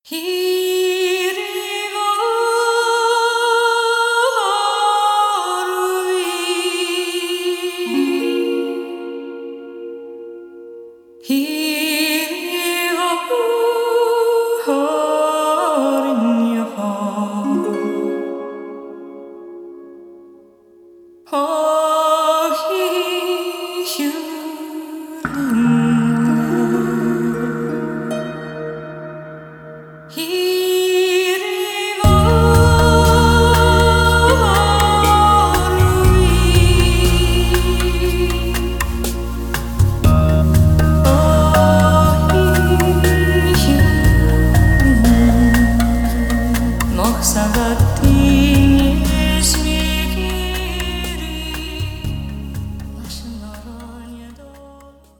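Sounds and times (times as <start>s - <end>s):
Celtic music: 0.1s - 55.1s.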